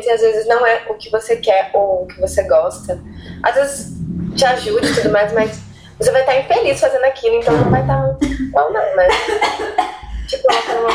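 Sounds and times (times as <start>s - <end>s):
speech: 0.1s - 10.9s
coughing: 7.5s - 10.9s.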